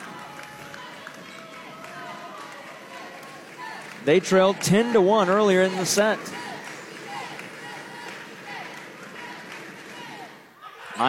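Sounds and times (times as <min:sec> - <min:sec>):
student section cheering at a college volleyball match: 0:00.0 - 0:11.0
speech: 0:04.0 - 0:06.5
commentator talking: 0:04.0 - 0:06.6.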